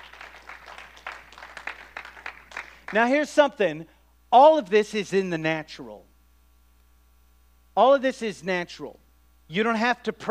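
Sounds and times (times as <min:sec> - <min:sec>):
church congregation hand clapping: 0:00.0 - 0:03.0
speech: 0:02.9 - 0:06.1, 0:07.8 - 0:10.2.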